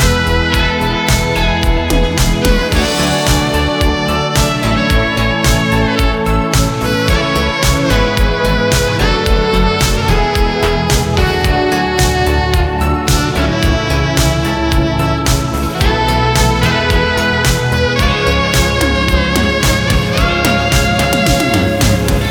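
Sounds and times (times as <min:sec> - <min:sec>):
ambient music: 0:00.0 - 0:22.2.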